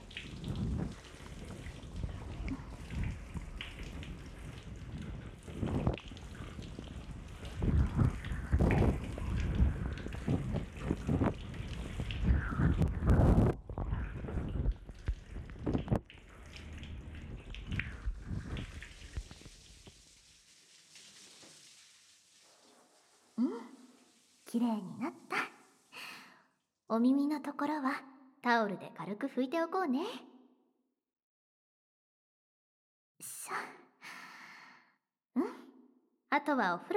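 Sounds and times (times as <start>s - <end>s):
shower water rinsing off shampoo: 0.0s - 26.3s
speech: 24.5s - 25.4s, 26.9s - 30.3s, 36.4s - 36.9s.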